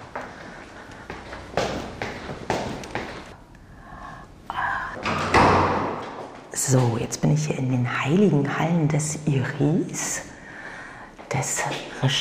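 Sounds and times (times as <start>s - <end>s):
footsteps climbing a staircase in a building in Paris's 11th arrondissement: 0.0s - 3.4s, 5.0s - 7.3s
speech: 6.7s - 10.3s, 11.3s - 12.2s.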